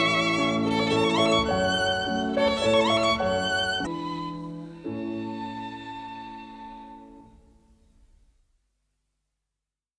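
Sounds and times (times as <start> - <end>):
violin: 0.0 - 7.5
piano: 0.0 - 8.4.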